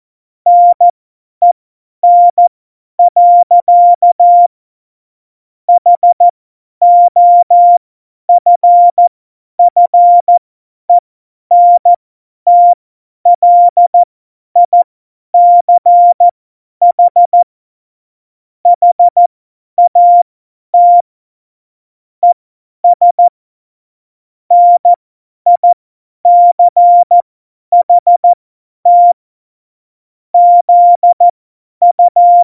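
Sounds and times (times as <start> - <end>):
CW Morse code at tempo 70: 0.5 - 4.5, 5.8 - 6.2, 6.8 - 7.8, 8.4 - 10.4, 11.5 - 14.8, 15.4 - 17.5, 18.8 - 19.2, 19.8 - 20.2, 20.8 - 21.1, 22.2 - 23.3, 24.5 - 29.2, 30.4 - 32.4.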